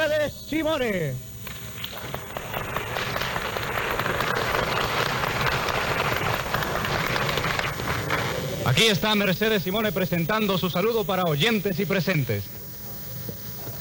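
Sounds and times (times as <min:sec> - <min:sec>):
speech: 0:00.3 - 0:01.3, 0:08.8 - 0:12.5
crowd applauding: 0:01.8 - 0:08.4.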